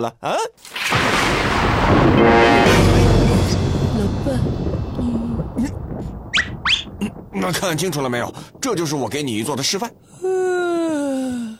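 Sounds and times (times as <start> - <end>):
speech: 0.0 - 2.9, 7.4 - 10.8
thunder clap: 0.6 - 10.8.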